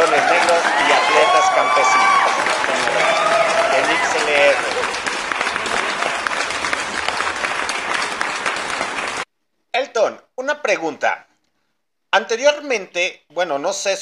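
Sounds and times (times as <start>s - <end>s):
voice over clapping: 0.0s - 9.2s
audience applause: 0.0s - 9.3s
speech: 10.7s - 11.3s, 12.1s - 13.9s.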